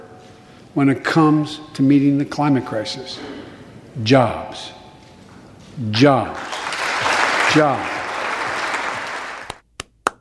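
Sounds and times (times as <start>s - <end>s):
speech: 0.8s - 3.3s, 4.0s - 4.8s, 5.8s - 6.5s, 7.5s - 7.9s
audience applause in recorded congressional speech: 6.2s - 9.6s
lone sharp claps: 6.4s - 10.2s.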